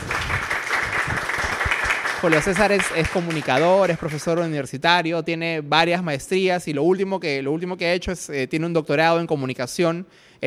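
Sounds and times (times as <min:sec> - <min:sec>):
audience applause: 0:00.0 - 0:04.5
speech: 0:02.2 - 0:10.4.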